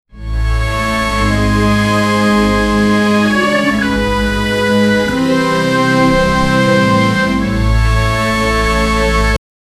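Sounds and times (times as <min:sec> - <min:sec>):
royal music: 0:00.1 - 0:09.4.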